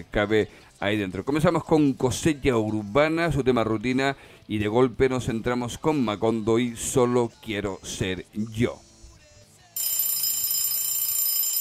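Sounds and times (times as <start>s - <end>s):
speech: 0.0s - 8.9s
alarm clock ringing: 9.8s - 11.5s.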